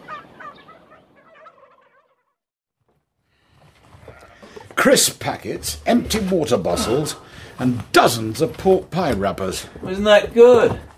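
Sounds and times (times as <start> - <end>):
turkey gobbling: 0.0 - 2.4
speech: 4.8 - 10.9.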